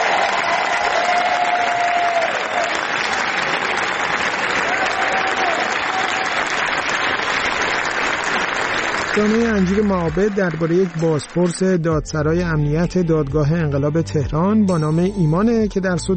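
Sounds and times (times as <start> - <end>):
audience applause at the Cannes film festival palace: 0.0 - 11.8
speech: 9.2 - 16.1.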